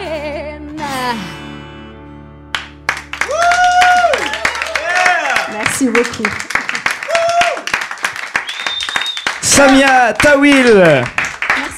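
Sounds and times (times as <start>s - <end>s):
speech: 1.1s - 1.4s, 5.8s - 6.6s, 9.6s - 11.2s
audience applause: 2.6s - 11.7s
sharp whistles: 8.4s - 9.4s.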